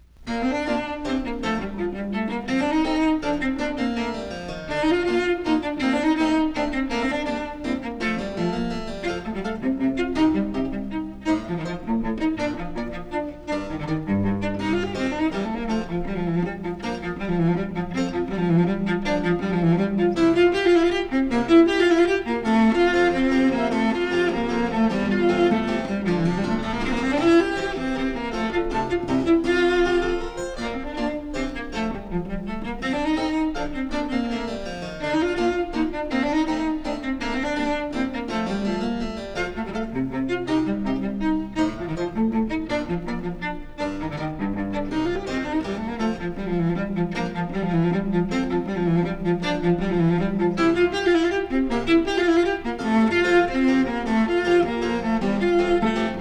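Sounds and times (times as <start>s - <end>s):
cello sonata: 0.0s - 56.2s.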